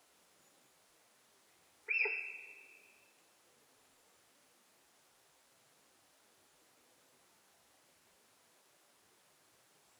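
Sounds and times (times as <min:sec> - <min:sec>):
faint hiss: 0:00.0 - 0:09.9
sika deer whistle: 0:01.9 - 0:02.7.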